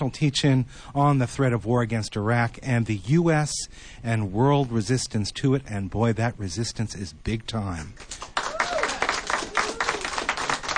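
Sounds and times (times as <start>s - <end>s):
speech: 0.0s - 8.3s
small live studio audience clapping in Berkeley, California: 8.0s - 10.7s.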